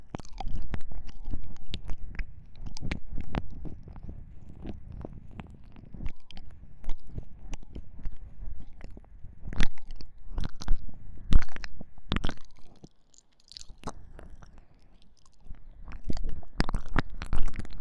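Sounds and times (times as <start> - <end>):
deep ear licking wet smacking and clicking: 0.0 - 10.8, 11.4 - 17.8.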